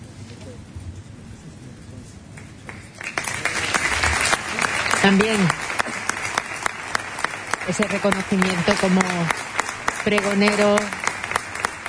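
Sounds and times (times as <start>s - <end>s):
crowd applause: 2.4s - 11.8s
speech: 5.0s - 5.6s, 7.7s - 11.0s.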